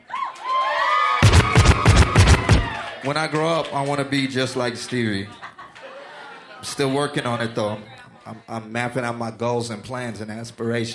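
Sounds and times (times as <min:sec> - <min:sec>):
audience cheering: 0:00.0 - 0:04.7
rhythmic claps or stomps: 0:01.2 - 0:03.2
speech: 0:03.1 - 0:05.4, 0:06.6 - 0:10.9
laughter: 0:04.9 - 0:08.5.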